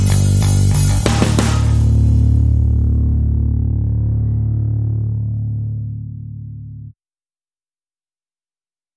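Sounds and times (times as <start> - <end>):
drums: 0.0 - 2.6
bass: 0.0 - 7.0.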